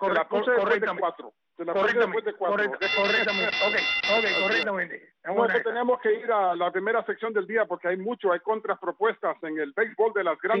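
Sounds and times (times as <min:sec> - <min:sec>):
speech: 0:00.0 - 0:10.5
bell sound effect: 0:02.9 - 0:04.6.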